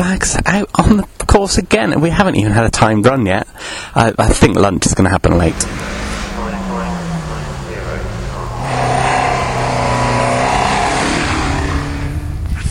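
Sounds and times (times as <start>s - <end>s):
speech: 0.0s - 6.0s
rescue truck engine droning while towing a crashed car: 5.4s - 12.6s.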